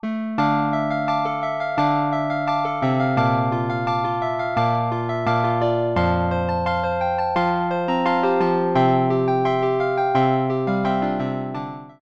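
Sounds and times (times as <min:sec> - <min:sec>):
electric piano: 0:00.0 - 0:12.0.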